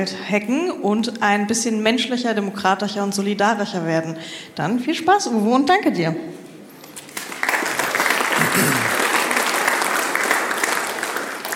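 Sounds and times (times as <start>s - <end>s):
speech: 0.0s - 6.4s
audience applause: 7.1s - 11.5s.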